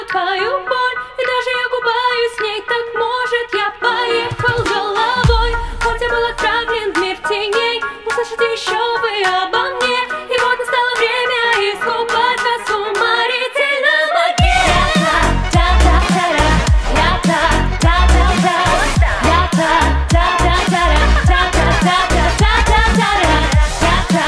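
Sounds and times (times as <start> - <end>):
woman singing a cover in Russian: 0.0 - 24.2.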